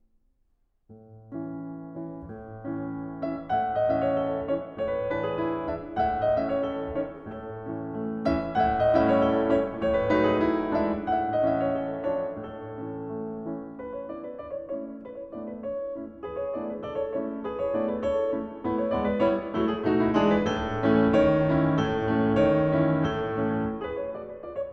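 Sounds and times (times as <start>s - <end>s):
piano piece: 0.9s - 24.7s.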